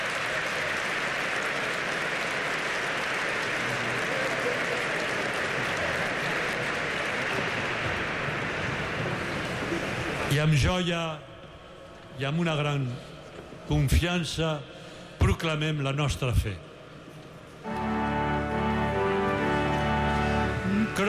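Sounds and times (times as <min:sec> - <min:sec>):
audience applauding: 0:00.0 - 0:10.3, 0:17.6 - 0:21.0
speech: 0:10.4 - 0:11.3, 0:12.2 - 0:14.8, 0:15.4 - 0:16.7.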